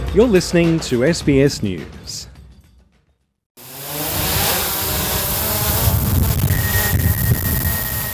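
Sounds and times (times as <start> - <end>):
speech: 0.1 - 2.3
drone taking flight: 3.6 - 8.0.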